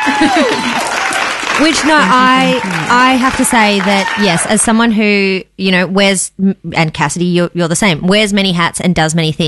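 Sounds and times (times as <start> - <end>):
crowd applause: 0.0 - 4.7
voices cheering: 0.0 - 4.7
speech: 0.1 - 1.0, 1.6 - 9.4.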